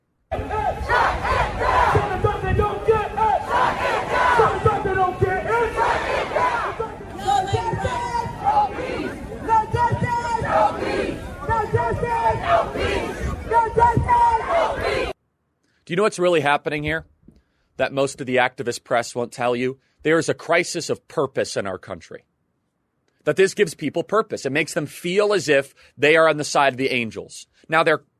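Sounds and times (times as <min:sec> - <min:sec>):
crowd chanting protest slogans: 0:00.3 - 0:15.2
speech: 0:15.9 - 0:17.1, 0:17.8 - 0:22.3, 0:23.2 - 0:28.1.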